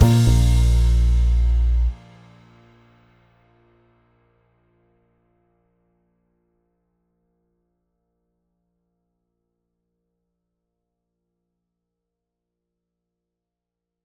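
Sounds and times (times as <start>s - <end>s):
brass playing a southern shuffle in B flat: 0.0s - 2.0s.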